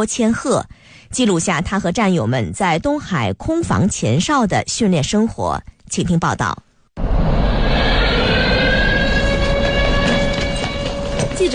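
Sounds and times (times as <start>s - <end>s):
speech: 0.0s - 6.7s, 11.4s - 11.5s
shrill alarm siren across military base: 7.0s - 11.5s.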